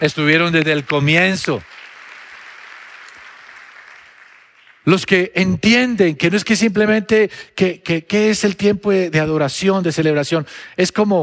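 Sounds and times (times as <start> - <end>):
speech: 0.0 - 1.8, 4.8 - 11.2
audience applause: 0.1 - 4.8.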